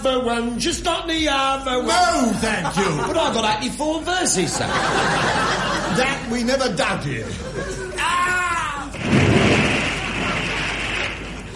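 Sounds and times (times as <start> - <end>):
speech: 0.0 - 8.0
laughter: 2.3 - 3.7, 4.3 - 8.4
oar dropped into water: 9.0 - 11.5.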